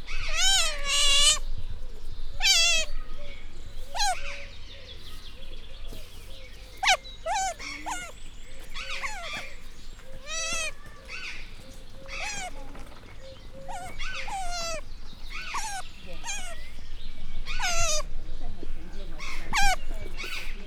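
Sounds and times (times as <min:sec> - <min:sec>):
Asian small-clawed otter sounds in a zoo: 0:00.3 - 0:01.4, 0:02.4 - 0:03.0, 0:03.9 - 0:04.2, 0:06.8 - 0:09.6, 0:10.2 - 0:11.0, 0:12.2 - 0:12.8, 0:13.7 - 0:16.8, 0:17.5 - 0:18.1, 0:19.2 - 0:20.6.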